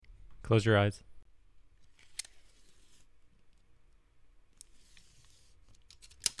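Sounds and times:
speech: 0.5 - 1.1
tape measure handling rustling and scraping: 1.8 - 3.7, 4.6 - 6.3.

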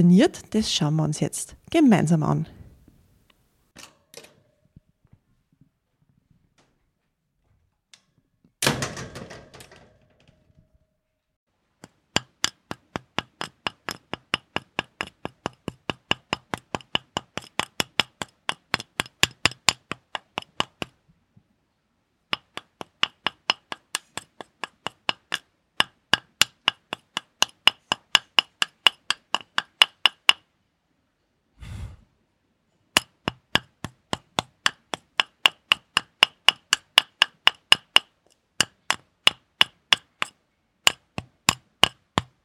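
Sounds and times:
speech: 0.0 - 2.6
metallic hammer striking rock to dig out garnet: 11.8 - 21.0, 22.3 - 30.4, 33.0 - 42.3.

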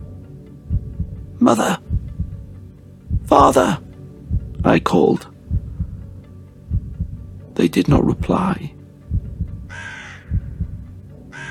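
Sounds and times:
low pulsing heartbeat-like throb: 0.0 - 8.4, 9.0 - 11.0
speech: 1.4 - 1.9, 3.4 - 3.8, 4.6 - 5.3, 7.6 - 8.8
crow cawing: 9.7 - 10.6, 11.3 - 11.4.

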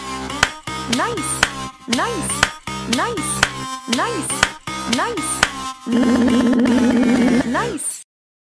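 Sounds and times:
hand clap: 0.4 - 5.6
speech: 0.9 - 8.0.

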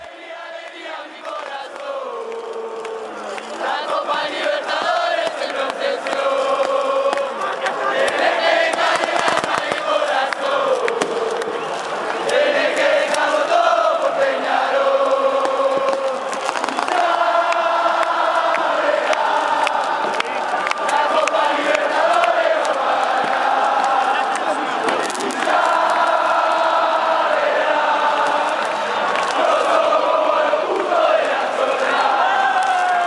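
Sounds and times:
football fans chanting as Peñarol enters the stadium: 0.0 - 33.0
fireworks: 0.1 - 13.4, 15.0 - 26.1.

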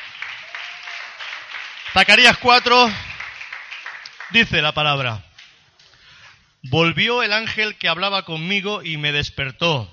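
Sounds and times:
audience applause: 0.0 - 4.4
speech: 1.9 - 3.0, 4.3 - 5.3, 6.6 - 9.9.

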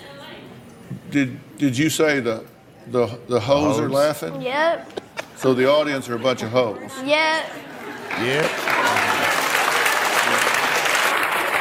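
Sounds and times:
speech: 1.1 - 8.8
person clapping: 8.4 - 11.5.

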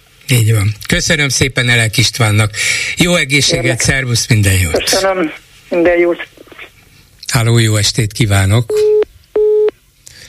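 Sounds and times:
faint hiss of line noise: 0.0 - 10.2
speech: 0.3 - 6.4, 7.3 - 8.9
telephone busy tone after a dropped call: 8.8 - 9.7.

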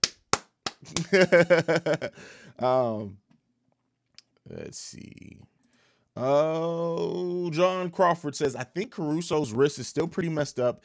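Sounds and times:
sharp hand claps: 0.0 - 1.3
speech: 0.8 - 3.2, 4.5 - 5.5, 6.2 - 10.8.

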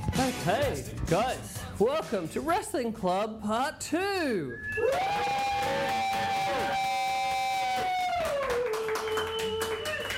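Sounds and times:
speech: 0.2 - 6.9
live audience of hundreds cheering at a wrestling club event: 4.8 - 10.1
scattered claps: 4.8 - 10.1.

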